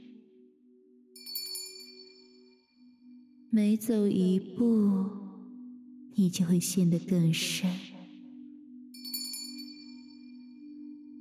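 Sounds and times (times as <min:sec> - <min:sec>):
small bell ringing: 0:01.2 - 0:03.0, 0:09.0 - 0:10.7
speech: 0:03.5 - 0:05.2, 0:06.2 - 0:07.9.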